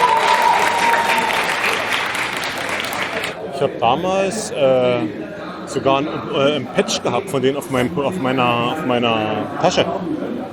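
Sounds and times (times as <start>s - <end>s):
audience applause: 0.0s - 3.4s
speech: 3.6s - 10.5s.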